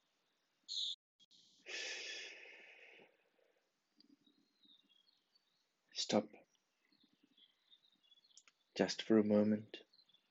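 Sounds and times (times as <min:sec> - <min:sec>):
breathing in through the mouth: 0:01.6 - 0:03.2
speech: 0:06.1 - 0:06.4, 0:08.8 - 0:09.8.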